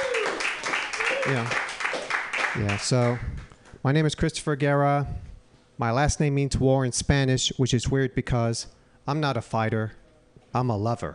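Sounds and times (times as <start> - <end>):
audience applause: 0.0 - 3.2
speech: 1.2 - 1.6, 2.5 - 11.1.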